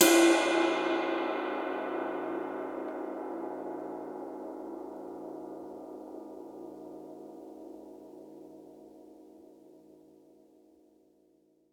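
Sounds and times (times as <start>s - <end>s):
ride cymbal: 0.0s - 4.0s.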